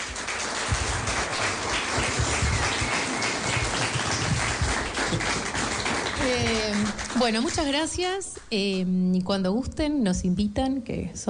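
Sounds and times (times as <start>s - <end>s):
applause: 0.0s - 8.0s
speech: 6.3s - 11.2s.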